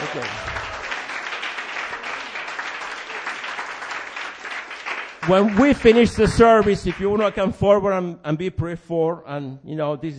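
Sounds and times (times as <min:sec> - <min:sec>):
audience clapping: 0:00.0 - 0:07.6
speech: 0:00.2 - 0:00.6, 0:05.3 - 0:10.1.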